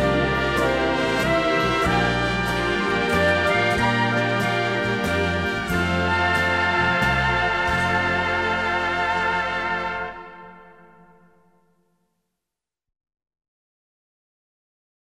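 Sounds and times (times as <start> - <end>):
orchestra playing a waltz: 0.0 - 11.0.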